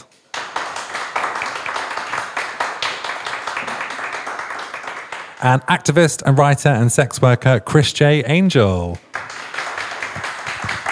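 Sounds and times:
audience applause: 0.3s - 5.6s, 9.1s - 10.9s
speech: 5.4s - 9.0s.

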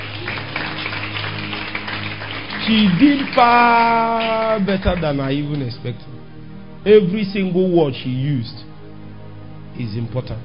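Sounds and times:
audience clapping: 0.0s - 5.8s
speech: 2.7s - 6.2s, 6.8s - 8.6s, 9.8s - 10.4s.

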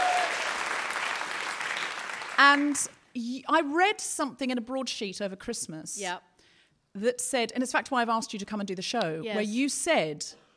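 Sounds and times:
round of applause from an audience: 0.0s - 2.8s
speech: 2.4s - 6.3s, 6.9s - 10.4s.

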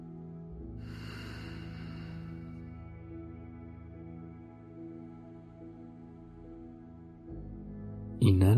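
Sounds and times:
low tonal drone: 0.0s - 8.3s
slow deep breath during a guided breathing exercise: 0.6s - 3.3s.

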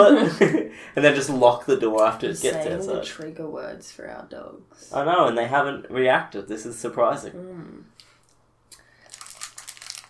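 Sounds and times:
speech: 0.0s - 8.0s
chocolate bar wrapper crinkling: 9.0s - 10.0s.

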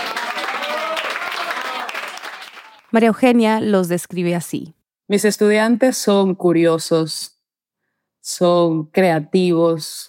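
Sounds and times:
audience applause: 0.0s - 2.9s
speech: 2.9s - 7.3s, 8.2s - 10.0s.

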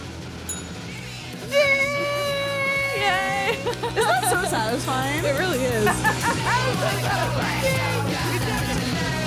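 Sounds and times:
bell ringing: 0.5s - 1.5s
laughter: 1.4s - 9.1s
speech: 3.7s - 8.4s.

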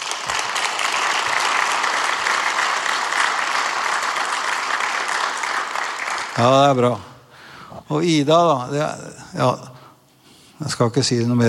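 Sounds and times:
congregation applause at a church gathering: 0.0s - 7.2s
speech: 6.4s - 7.1s, 7.8s - 9.8s, 10.6s - 11.4s.

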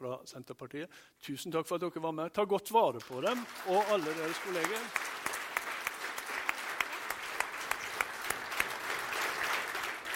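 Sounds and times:
speech: 0.1s - 5.4s
audience applause: 3.0s - 10.1s.

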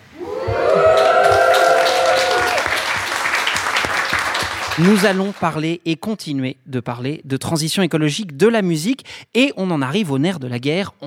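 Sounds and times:
audience applauding and cheering: 0.1s - 5.6s
speech: 4.8s - 11.0s.

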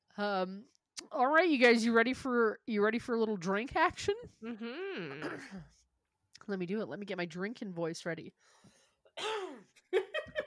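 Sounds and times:
speech: 0.2s - 5.8s, 6.4s - 9.4s
drawn-out voiced throat sound: 4.4s - 5.7s
short rough coughs: 5.1s - 5.8s, 9.2s - 9.8s.

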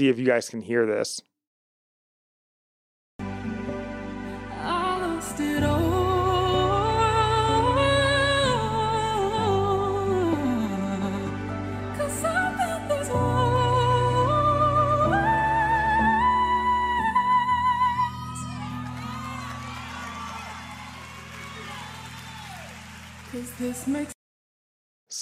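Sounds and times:
speech: 0.0s - 1.3s, 23.6s - 24.2s
woman singing: 4.5s - 19.2s
church crowd hooting, whistling and cheering: 18.0s - 23.8s.

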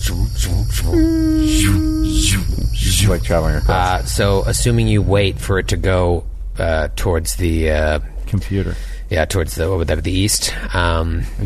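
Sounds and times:
electronic laser wall hum: 0.0s - 8.7s
constant low rumble: 0.0s - 11.4s
speech: 0.0s - 11.4s.

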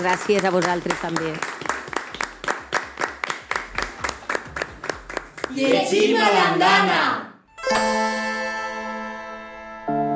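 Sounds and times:
speech: 0.0s - 1.6s, 5.5s - 8.2s
small group clapping: 0.0s - 7.2s.

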